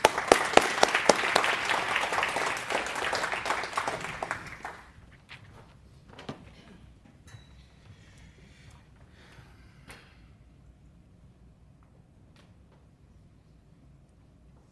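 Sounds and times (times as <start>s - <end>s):
audience applause: 0.0s - 5.0s.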